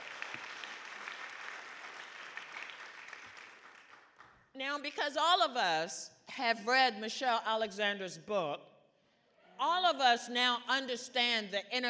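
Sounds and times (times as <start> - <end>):
audience applause: 0.0 - 4.3
speech: 4.6 - 8.7, 9.6 - 11.8.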